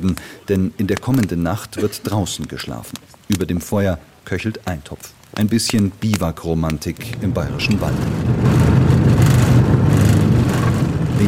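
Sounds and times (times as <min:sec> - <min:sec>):
speech: 0:00.0 - 0:08.7
Puma infantry fighting vehicle rolling up: 0:07.0 - 0:11.2.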